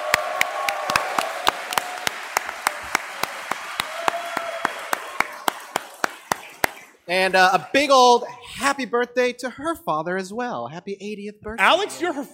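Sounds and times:
audience applause: 0:00.0 - 0:07.0
speech: 0:07.1 - 0:12.3.

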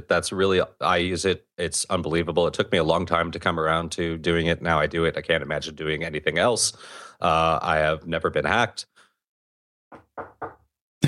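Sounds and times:
speech: 0:00.0 - 0:09.0
knocking on wood: 0:09.9 - 0:10.6.

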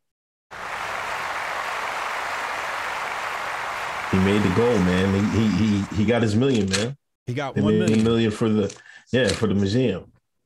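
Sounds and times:
clapping applause: 0:00.5 - 0:06.2
speech: 0:04.2 - 0:10.1.

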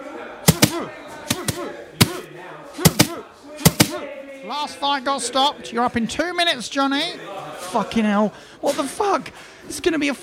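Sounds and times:
punches hitting boxing pads: 0:00.5 - 0:02.2, 0:02.9 - 0:04.0
speech: 0:04.4 - 0:10.2.

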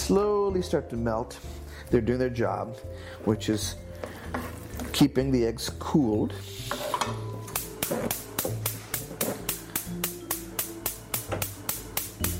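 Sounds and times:
speech: 0:00.1 - 0:04.4, 0:05.0 - 0:07.2
stove burner clicking as heat turns on: 0:06.9 - 0:12.3.

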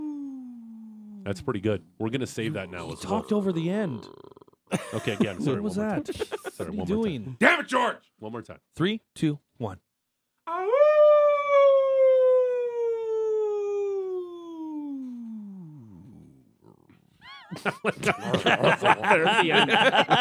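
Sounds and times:
person imitating a wolf howl: 0:00.0 - 0:01.2, 0:10.5 - 0:16.0
speech: 0:01.2 - 0:09.9, 0:17.5 - 0:20.1
person laughing: 0:04.7 - 0:06.9, 0:17.3 - 0:20.1.

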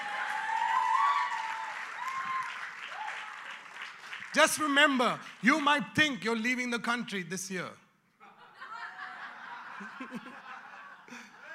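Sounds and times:
audience clapping: 0:00.0 - 0:05.8
speech: 0:04.4 - 0:07.8
laughter: 0:08.2 - 0:11.5.

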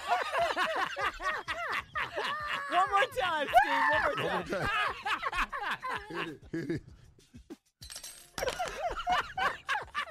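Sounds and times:
laughter: 0:00.0 - 0:06.9, 0:08.4 - 0:10.0
speech: 0:06.1 - 0:07.0
silverware being dropped: 0:07.8 - 0:08.8.

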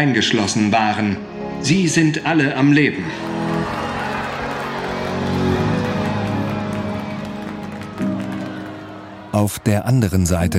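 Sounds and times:
speech: 0:00.0 - 0:03.4, 0:09.4 - 0:10.5
parents clapping and cheering: 0:03.0 - 0:10.0.

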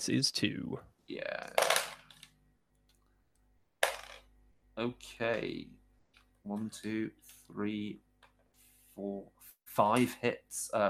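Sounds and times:
speech: 0:00.0 - 0:01.8, 0:04.8 - 0:05.8, 0:06.4 - 0:08.1, 0:09.0 - 0:10.8
dice rolled for an attack in a tabletop game: 0:03.8 - 0:04.3.

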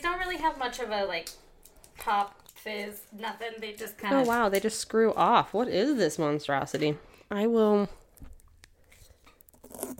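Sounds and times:
speech: 0:00.4 - 0:01.4, 0:02.0 - 0:08.0
paper wrapper tearing off a bottle: 0:09.4 - 0:09.9.

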